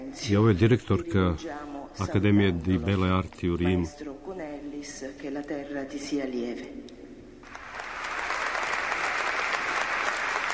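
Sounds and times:
speech: 0:00.1 - 0:04.2, 0:04.8 - 0:06.8
mourners applauding in the Church of the Artists on Piazza del Popolo, Rome: 0:07.4 - 0:10.5.

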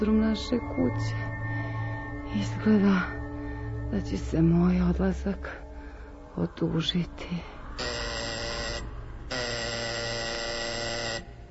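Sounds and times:
speech: 0:00.0 - 0:01.3, 0:02.3 - 0:03.2, 0:03.9 - 0:05.6, 0:06.4 - 0:08.0
buzzing doorbell: 0:07.8 - 0:11.4.

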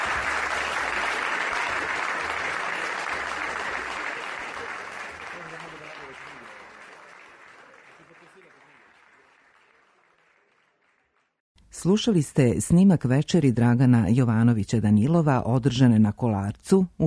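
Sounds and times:
audience applause at a poetry evening at Kolarac hall: 0:00.0 - 0:11.4
speech: 0:11.8 - 0:17.0.

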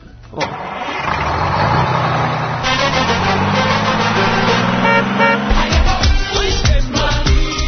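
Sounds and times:
motorcycle engine: 0:00.4 - 0:07.5.

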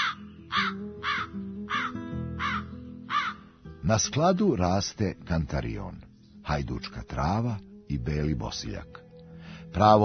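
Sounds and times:
Eurasian magpies chattering from flocks on haystacks: 0:00.0 - 0:03.5
speech: 0:03.9 - 0:09.0, 0:09.7 - 0:10.0.

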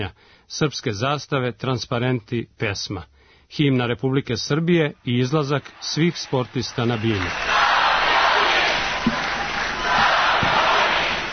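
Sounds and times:
speech: 0:00.0 - 0:07.6
crowd cheering and applauding: 0:05.1 - 0:11.3.

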